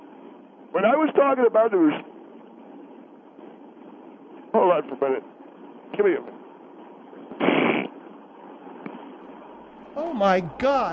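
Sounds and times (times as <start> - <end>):
quiet hiss: 0.0 - 10.9
speech: 0.7 - 2.1, 4.6 - 6.4, 10.0 - 10.9
person blowing nose: 7.4 - 7.9.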